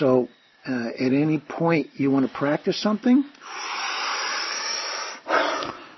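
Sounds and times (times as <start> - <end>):
speech: 0.0 - 3.7
quick, complete exhale of breath: 3.4 - 5.9.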